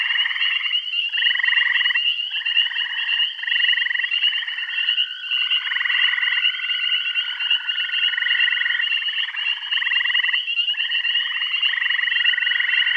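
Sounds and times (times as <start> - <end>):
frog chorus of overlapping pulsed buzzy trills in Bath County: 0.0 - 12.9.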